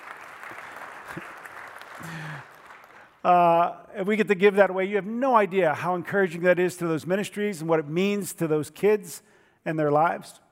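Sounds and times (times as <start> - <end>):
audience clapping: 0.0 - 3.3
speech: 3.2 - 10.4.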